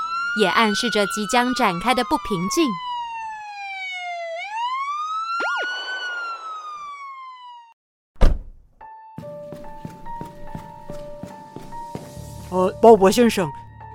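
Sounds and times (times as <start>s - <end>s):
police siren wailing: 0.0s - 7.8s
speech: 0.4s - 2.8s, 12.6s - 13.6s
car door thunk: 8.2s - 8.6s
faint footsteps and shuffling: 9.2s - 12.6s.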